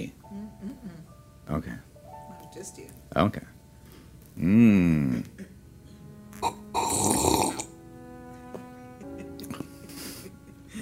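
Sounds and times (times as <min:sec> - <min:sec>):
speech: 0:00.0 - 0:00.2, 0:01.5 - 0:01.9, 0:02.6 - 0:03.6, 0:04.4 - 0:05.5
small mouth sounds: 0:04.4 - 0:05.5, 0:06.4 - 0:07.7
slurping sip of an extra frothy drink: 0:06.8 - 0:07.7.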